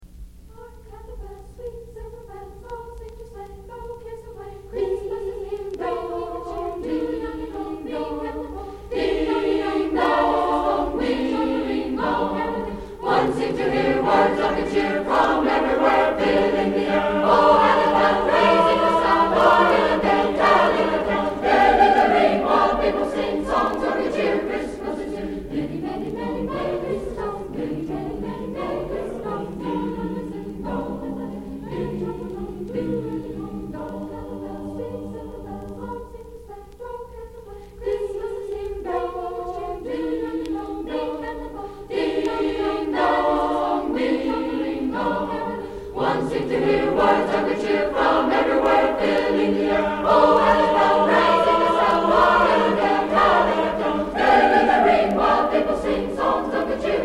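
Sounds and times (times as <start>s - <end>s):
a cappella choir singing in a choral concert: 0.4s - 57.0s.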